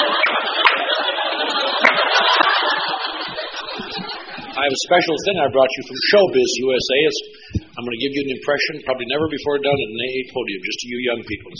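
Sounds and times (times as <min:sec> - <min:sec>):
audience applauding: 0:00.0 - 0:04.7
laughter: 0:00.0 - 0:06.8
speech: 0:04.6 - 0:11.5.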